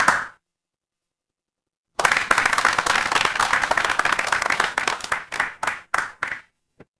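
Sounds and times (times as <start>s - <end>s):
crowd applause: 2.0s - 6.4s.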